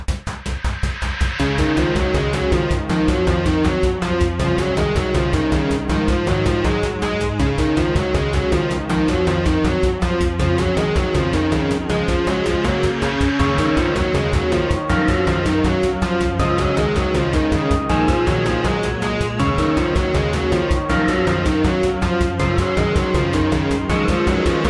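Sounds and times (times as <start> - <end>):
battle music: 0.1 - 24.6.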